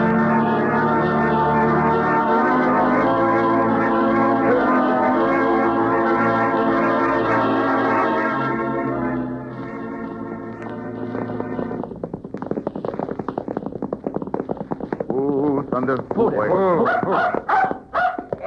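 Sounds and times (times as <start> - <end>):
sustained musical tone: 0.0 - 11.9
rhythmic clip-clopping hooves: 10.6 - 18.4
dog barking and yelping excitedly: 16.8 - 18.4.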